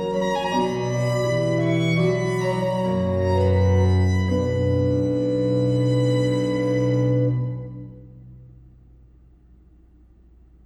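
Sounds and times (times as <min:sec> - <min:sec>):
largo concerto for violin organ and strings: 0:00.0 - 0:08.3.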